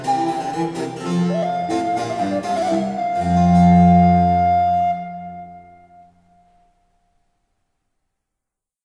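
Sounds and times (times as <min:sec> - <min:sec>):
sonata minuet and gavotte: 0:00.0 - 0:06.8.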